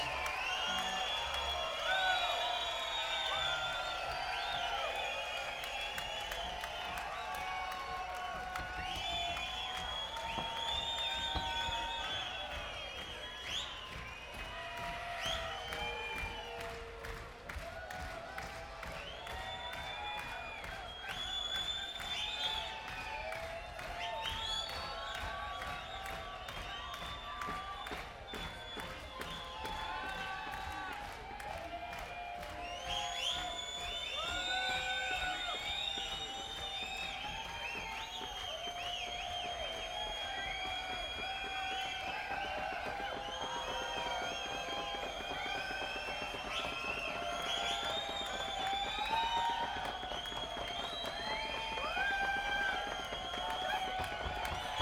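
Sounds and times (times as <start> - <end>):
crowd: 0.0 - 54.8.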